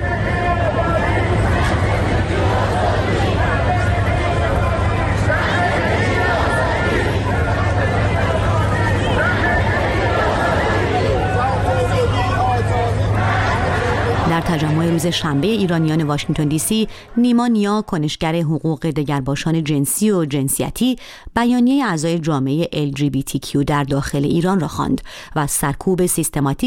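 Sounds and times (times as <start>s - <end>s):
crowd chanting protest slogan: 0.0s - 18.0s
speech: 14.5s - 26.6s.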